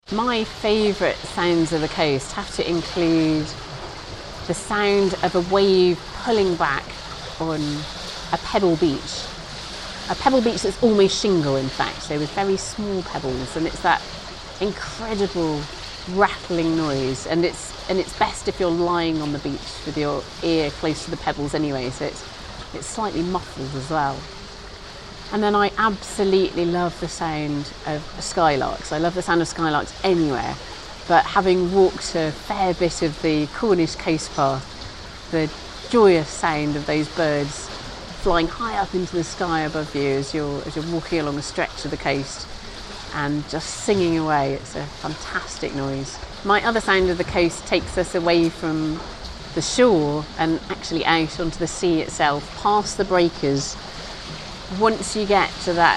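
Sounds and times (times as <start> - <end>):
coastal sounds: 0.0 - 55.9.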